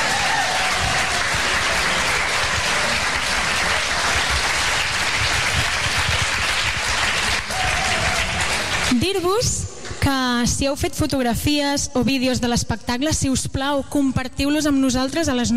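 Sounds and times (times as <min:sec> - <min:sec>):
audience applause for the technicians: 0:00.0 - 0:09.0
speech: 0:10.4 - 0:15.5.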